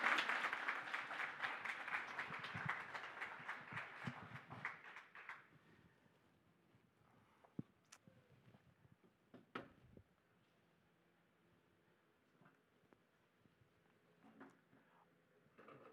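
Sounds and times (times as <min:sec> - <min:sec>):
round of applause: 0:00.0 - 0:05.5.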